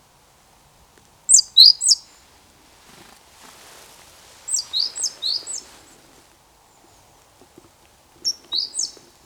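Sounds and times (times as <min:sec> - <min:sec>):
great tit calling: 0:01.3 - 0:02.2, 0:04.5 - 0:06.0, 0:08.2 - 0:09.1
soft background rustle: 0:02.1 - 0:09.2.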